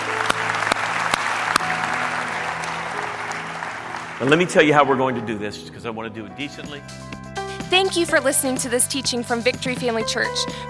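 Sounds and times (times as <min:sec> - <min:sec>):
audience applause: 0:00.0 - 0:05.1
speech: 0:04.2 - 0:10.6.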